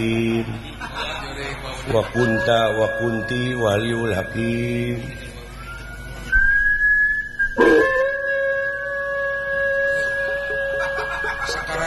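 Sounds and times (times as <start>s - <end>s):
speech: 0.0s - 5.3s
laughter: 0.3s - 2.5s, 10.2s - 11.8s
dog whining: 7.4s - 11.0s.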